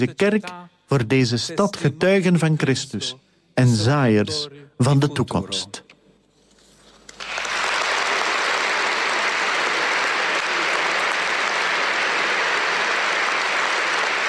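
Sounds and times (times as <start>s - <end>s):
speech: 0.0s - 5.8s
large audience applauding in cathedral: 7.1s - 14.2s.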